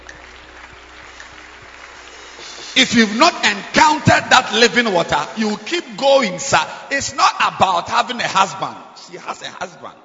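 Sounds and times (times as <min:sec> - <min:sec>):
audience clapping: 0:00.0 - 0:05.4
speech: 0:02.8 - 0:10.0.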